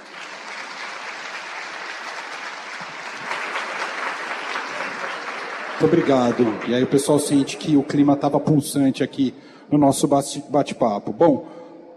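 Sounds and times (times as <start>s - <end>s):
audience round of applause: 0.0s - 7.9s
speech: 5.8s - 11.9s.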